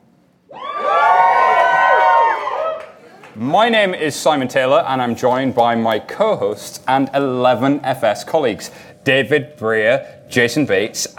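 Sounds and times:
live audience cheering and whooping: 0.5 - 3.3
speech: 3.4 - 11.1.

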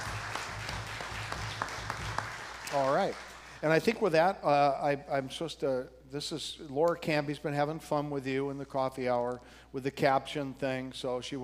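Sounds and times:
audience applauding: 0.0 - 3.7
speech: 2.7 - 11.4.

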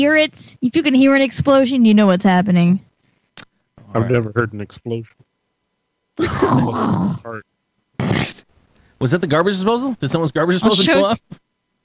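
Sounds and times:
speech: 0.0 - 2.9, 3.9 - 5.3, 6.2 - 7.5, 9.0 - 11.4
rough phlegmy throat clearing: 8.0 - 8.4.

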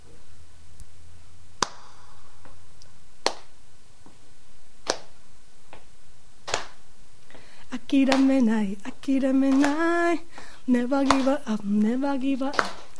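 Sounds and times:
audience clapping hands in rhythm: 1.6 - 2.0, 3.3 - 3.5, 4.9 - 5.1, 6.5 - 6.8, 8.1 - 8.5, 9.5 - 9.9, 11.0 - 11.4, 12.4 - 12.9
speech: 7.9 - 12.8.

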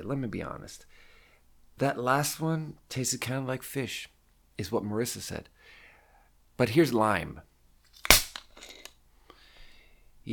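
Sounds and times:
speech: 0.0 - 1.1, 1.8 - 5.6, 6.6 - 7.5
Field Day plastic drink bottle cap cracking open: 8.0 - 9.0.

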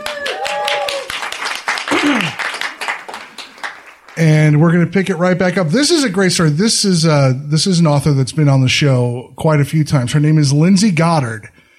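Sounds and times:
crowd applause: 0.0 - 5.3
speech: 4.2 - 11.6.

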